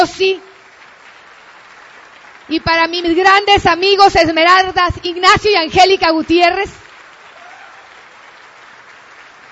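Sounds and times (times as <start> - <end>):
speech: 0.0 - 0.5, 2.5 - 6.8
audience applause: 0.5 - 3.0, 5.9 - 9.5.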